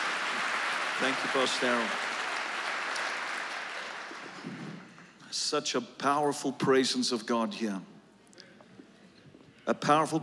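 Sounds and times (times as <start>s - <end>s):
audience applause welcoming a pastor at a church service: 0.0s - 4.6s
speech: 1.0s - 2.1s, 5.4s - 7.9s, 9.7s - 10.2s.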